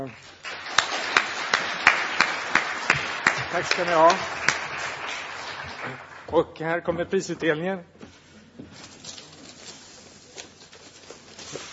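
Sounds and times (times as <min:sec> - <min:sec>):
speech: 0:00.0 - 0:00.7, 0:03.5 - 0:04.4, 0:05.8 - 0:08.0
audience applause: 0:00.0 - 0:06.4.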